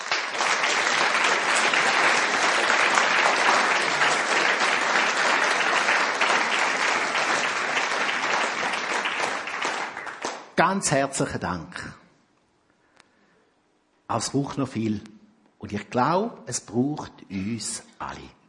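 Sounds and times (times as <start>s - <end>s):
audience applause: 0.0s - 10.6s
speech: 10.6s - 12.0s, 14.1s - 18.4s.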